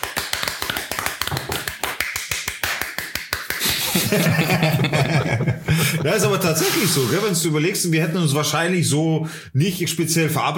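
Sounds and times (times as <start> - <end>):
a few people clapping hands: 0.0 - 5.2
laughter: 3.6 - 7.3
speech: 4.1 - 10.5.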